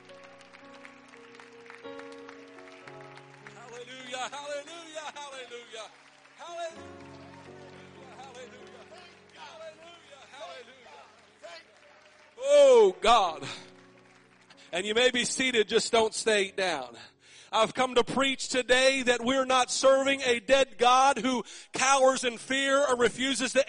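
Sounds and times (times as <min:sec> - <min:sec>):
audience clapping hands: 0:00.0 - 0:15.7
organ or keyboard chords: 0:00.0 - 0:20.8
speech: 0:04.2 - 0:07.2, 0:12.8 - 0:13.7, 0:14.7 - 0:23.6.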